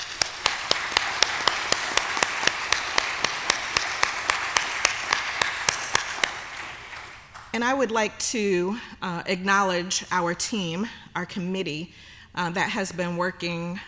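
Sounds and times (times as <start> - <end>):
audience applause: 0.0 - 7.5
speech: 7.6 - 13.8.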